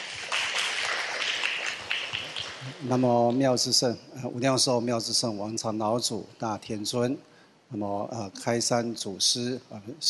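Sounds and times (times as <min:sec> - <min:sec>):
audience applause welcoming a speaker at a Buddhist gathering: 0:00.0 - 0:02.8
speech: 0:02.6 - 0:10.0.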